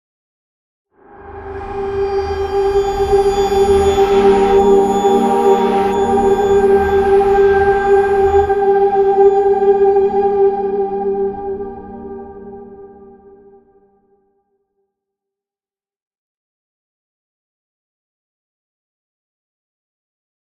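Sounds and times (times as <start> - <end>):
string instrument: 1.0 - 13.6.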